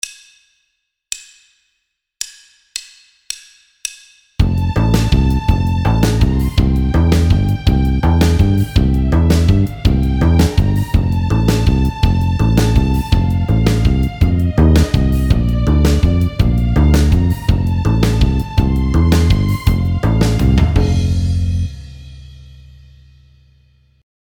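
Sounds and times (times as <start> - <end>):
musical accompaniment: 4.4 - 22.6.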